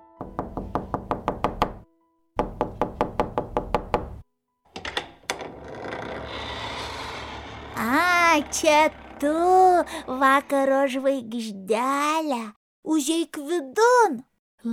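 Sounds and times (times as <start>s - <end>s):
knuckles rapping on the little door of a rabbit's house: 0.2s - 1.8s, 2.4s - 4.2s
scraping and rustling: 5.4s - 10.5s
speech: 8.4s - 14.7s.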